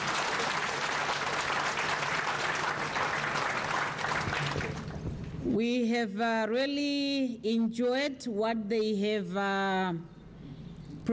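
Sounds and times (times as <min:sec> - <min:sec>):
crowd applauding: 0:00.0 - 0:05.2
speech: 0:05.6 - 0:10.1.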